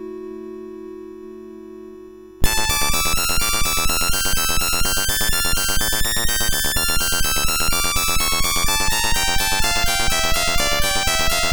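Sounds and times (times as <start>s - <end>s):
toccata played on MOS6581R2 sound chip: 2.5s - 11.5s.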